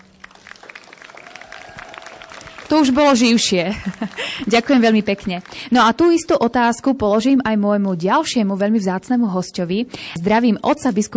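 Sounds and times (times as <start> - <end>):
audience applause: 0.0 - 6.2
speech: 2.7 - 11.1
laughter: 3.5 - 4.8.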